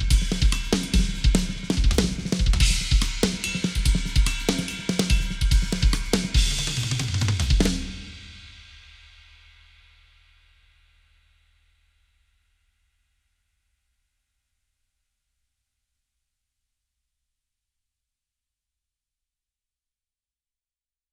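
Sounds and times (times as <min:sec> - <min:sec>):
Yamaha 9000 drum: 0:00.0 - 0:09.5.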